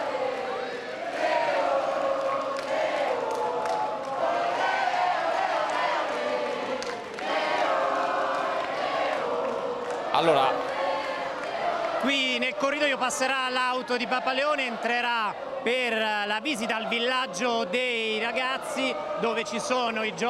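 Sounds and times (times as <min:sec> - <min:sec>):
crowd chanting: 0:00.0 - 0:20.2
speech: 0:10.2 - 0:10.7, 0:12.0 - 0:20.2.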